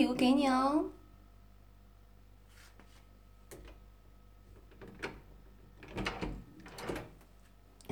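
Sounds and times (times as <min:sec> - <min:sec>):
speech: 0:00.0 - 0:01.0
bedroom door rattling and knocking as it opens: 0:04.5 - 0:07.2.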